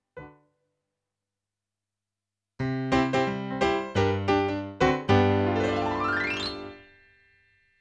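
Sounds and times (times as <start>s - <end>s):
piano: 0.1s - 0.5s, 2.6s - 7.2s.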